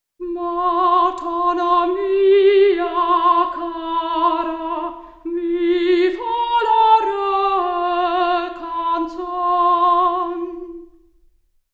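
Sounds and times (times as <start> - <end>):
soprano singing: 0.2 - 11.1.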